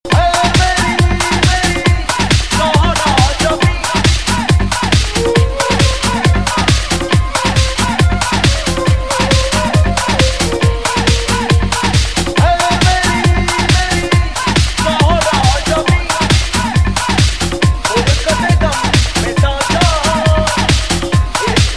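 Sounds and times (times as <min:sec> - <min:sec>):
Punjabi club mix music: 0:00.1 - 0:21.7.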